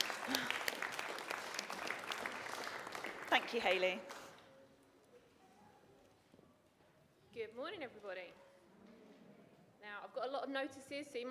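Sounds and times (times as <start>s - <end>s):
audience clapping: 0.0s - 4.4s
speech: 3.3s - 4.2s, 7.6s - 8.4s, 9.9s - 11.2s.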